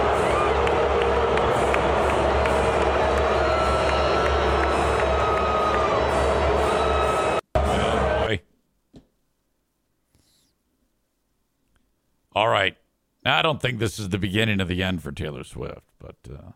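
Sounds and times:
large crowd booing: 0.0 - 8.3
speech: 12.4 - 16.5.

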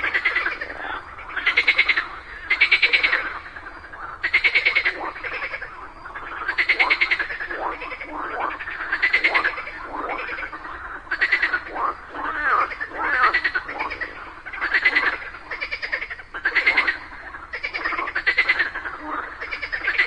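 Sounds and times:
frogs croaking in chorus: 0.0 - 20.0.

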